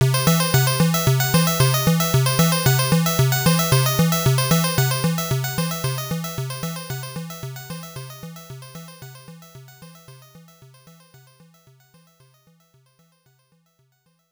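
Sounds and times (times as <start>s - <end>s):
hurry up music: 0.0s - 8.3s.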